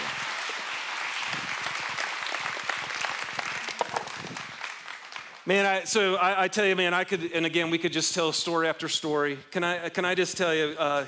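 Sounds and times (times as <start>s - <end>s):
audience applause: 0.0s - 5.6s
speech: 5.5s - 11.0s.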